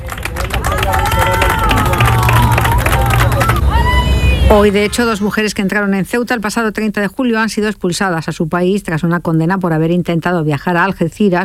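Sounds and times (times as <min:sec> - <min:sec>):
crowd clapping at port: 0:00.0 - 0:04.2
crowd cheering and shouting at port: 0:00.0 - 0:05.2
low steady hum: 0:00.1 - 0:11.4
speech: 0:04.5 - 0:11.4.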